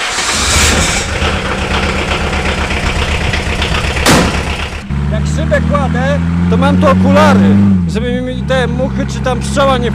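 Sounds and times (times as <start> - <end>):
hissy bursts: 0.0 - 1.6
GAZ off-road jeep engine idling: 0.0 - 9.9
speech: 5.5 - 9.9.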